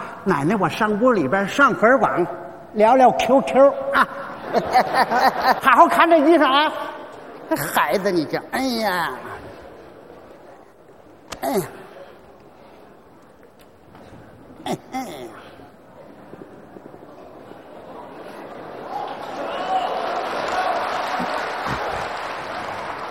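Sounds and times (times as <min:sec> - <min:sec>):
speech: 0:00.2 - 0:06.9, 0:07.5 - 0:09.3, 0:11.4 - 0:11.8, 0:14.6 - 0:15.4
laughter: 0:03.8 - 0:10.2, 0:17.1 - 0:23.1
brief vocal exclamations: 0:11.3 - 0:11.9
audience applause: 0:18.5 - 0:23.1.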